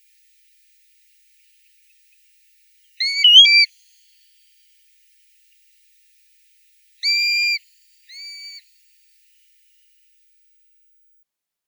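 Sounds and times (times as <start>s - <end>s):
grey plover calling: 3.0s - 3.7s, 7.0s - 8.6s.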